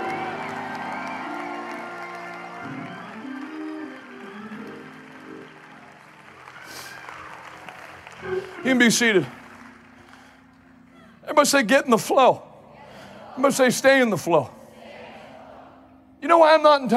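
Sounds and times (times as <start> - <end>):
audience clapping: 0.0 - 11.6
speech: 8.3 - 9.4, 11.4 - 12.5, 13.4 - 14.6, 16.3 - 16.9.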